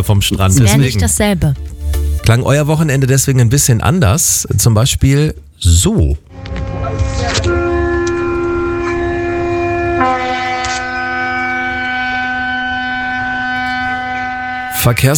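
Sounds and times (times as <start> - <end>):
speech: 0.0 - 7.3, 14.8 - 15.1
ship horn blast: 6.3 - 15.1.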